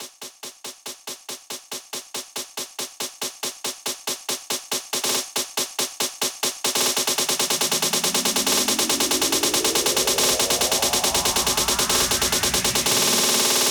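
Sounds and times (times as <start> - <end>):
snare drum roll in 140bpm drum loop: 3.9 - 13.6.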